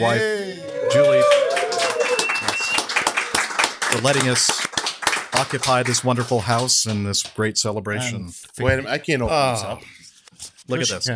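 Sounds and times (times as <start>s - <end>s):
speech: 0.0s - 1.4s, 4.0s - 4.7s, 5.4s - 11.1s
round of applause: 0.0s - 7.3s.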